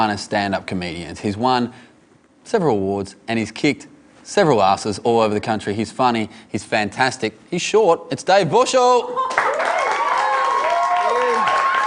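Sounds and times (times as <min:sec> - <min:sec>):
speech: 0:00.0 - 0:09.8
audience round of applause: 0:09.3 - 0:11.8.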